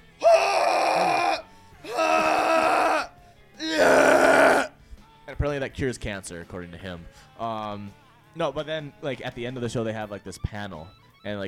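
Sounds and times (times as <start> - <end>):
person imitating guttural screaming: 0.2 - 4.7
speech: 5.5 - 11.4.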